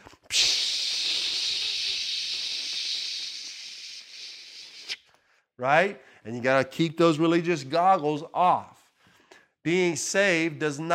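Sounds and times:
aerosol spray can hiss: 0.3 - 5.0
speech: 5.6 - 8.8, 9.6 - 10.9.

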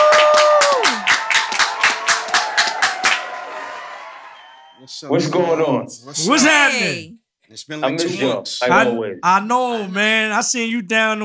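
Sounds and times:
hand claps: 0.0 - 3.3
speech: 5.0 - 11.2.

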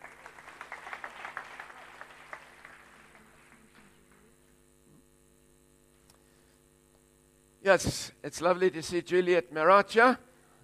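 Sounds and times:
crowd applause: 0.0 - 4.3
speech: 7.7 - 10.3.

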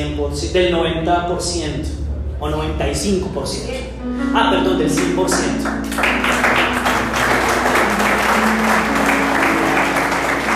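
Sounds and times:
speech: 0.2 - 6.6
crowd clapping: 5.3 - 10.5.

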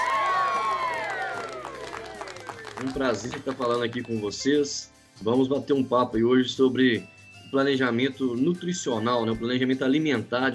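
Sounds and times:
audience applause and cheering: 0.0 - 4.2
speech: 2.8 - 10.5.

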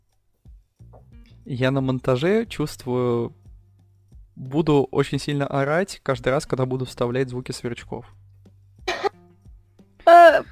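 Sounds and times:
speech: 1.0 - 3.4, 4.4 - 8.2
person sneezing: 8.9 - 9.1.

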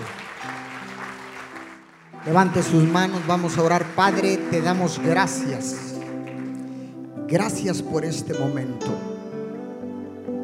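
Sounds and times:
crowd clapping: 0.0 - 7.6
held keyboard chord: 0.0 - 10.4
speech: 2.2 - 5.9, 7.3 - 9.1.

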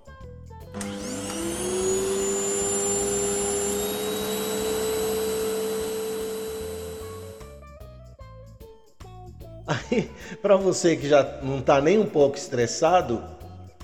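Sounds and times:
vacuum cleaner running at night: 0.8 - 7.4
speech: 9.9 - 13.4.

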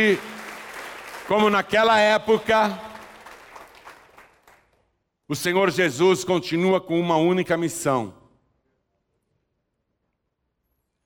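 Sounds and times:
speech: 0.0 - 0.3, 1.3 - 2.9, 5.3 - 8.2
audience applause: 0.0 - 4.8.

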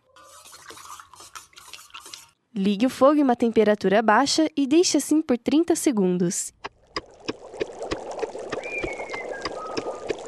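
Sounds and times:
stirring a potion in a cauldron: 0.0 - 2.4, 6.9 - 10.2
speech: 2.6 - 6.6.

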